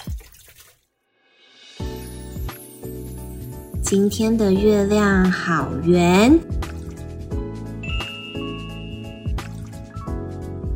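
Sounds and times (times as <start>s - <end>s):
dishes being washed in water: 0.0s - 0.8s, 6.3s - 7.3s, 9.2s - 10.0s
speech: 3.9s - 6.5s.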